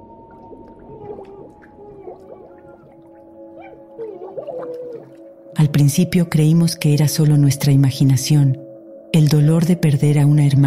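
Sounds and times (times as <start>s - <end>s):
water gurgling: 0.0s - 6.5s
speech: 4.0s - 8.6s, 9.2s - 10.6s.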